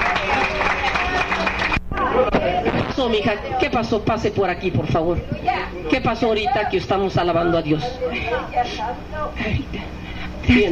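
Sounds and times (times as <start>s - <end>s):
audience applauding: 0.0s - 2.1s
speech: 3.0s - 10.7s.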